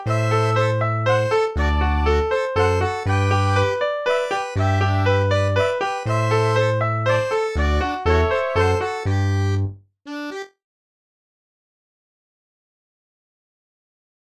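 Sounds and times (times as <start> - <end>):
mazurka: 0.0 - 10.5.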